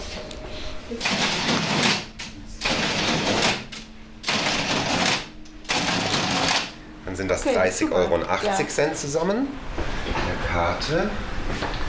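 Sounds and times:
old mechanical metal cash register: 1.0s - 6.8s
speech: 7.2s - 9.8s, 10.6s - 11.8s.

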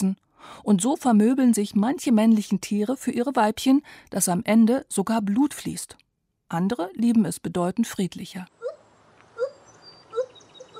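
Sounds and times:
speech: 0.0s - 8.6s
gibbons singing a duet: 8.6s - 8.8s, 9.4s - 10.7s.

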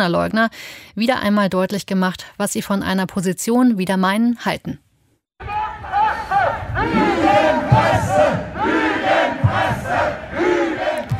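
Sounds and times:
speech: 0.0s - 4.8s
protest crowd chanting and shouting: 5.4s - 11.1s.

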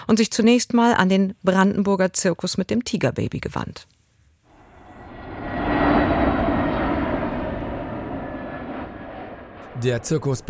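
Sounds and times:
speech: 0.1s - 4.0s, 9.8s - 10.4s
airplane passing near airport runway: 4.5s - 10.4s
faint high whine: 4.5s - 10.4s.

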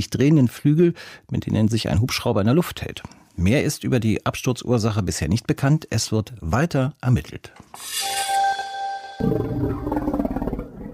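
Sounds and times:
speech: 0.0s - 8.4s, 9.2s - 10.2s
imagined call of a sauropod dinosaur: 7.8s - 10.9s.

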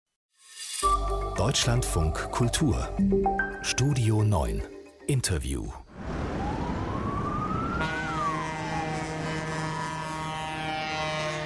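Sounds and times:
speech: 1.4s - 5.8s
siren: 6.0s - 11.4s
vehicle horns honking in city traffic: 7.8s - 11.4s.

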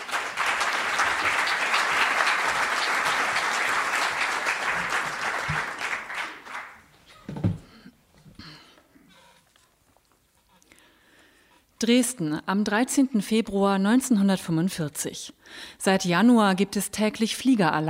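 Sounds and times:
audience applause: 0.0s - 6.9s
speech: 11.8s - 17.8s.

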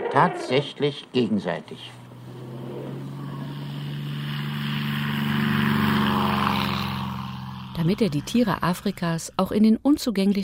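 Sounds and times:
speech: 0.2s - 2.0s, 7.8s - 10.4s
small propeller airplane in flight: 2.0s - 9.4s.

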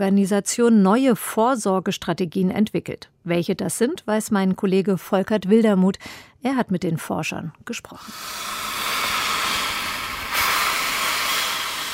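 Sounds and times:
speech: 0.0s - 8.8s
saw-scaled viper rasping its scales: 8.0s - 11.9s.

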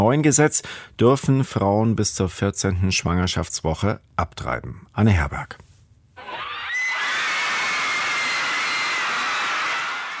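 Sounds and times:
speech: 0.0s - 5.6s
high screams and whoops: 6.2s - 10.1s
large crowd cheering and jubilant shouting: 6.2s - 10.1s.

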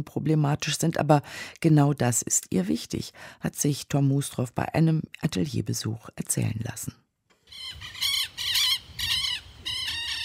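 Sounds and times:
speech: 0.0s - 7.7s
birds chirping: 7.4s - 10.2s
wind rushing through the trees: 7.4s - 10.2s.

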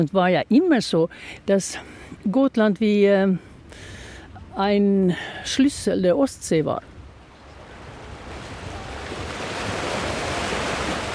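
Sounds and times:
speech: 0.0s - 4.0s, 4.6s - 6.9s
light breeze: 0.0s - 11.1s
waves washing onto a sandy beach: 6.9s - 11.1s.

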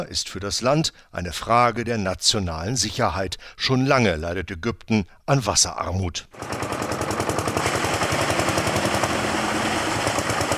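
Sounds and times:
speech: 0.0s - 6.8s
water pump starting up: 6.4s - 10.5s.

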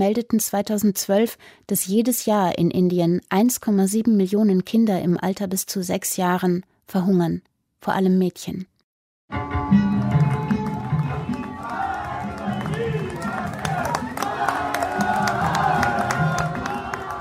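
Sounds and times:
speech: 0.0s - 8.7s
wedding guests cheering as the bride enters the wedding hall: 10.2s - 17.1s.

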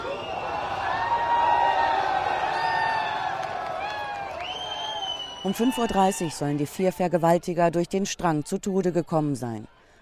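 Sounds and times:
crowd cheering outside a prison: 0.0s - 7.2s
speech: 5.4s - 9.7s.

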